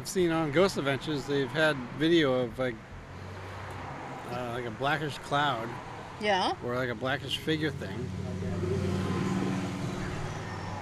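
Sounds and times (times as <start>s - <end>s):
speech: 0.0s - 2.9s, 4.3s - 8.6s
motorcycle passing: 3.4s - 10.8s.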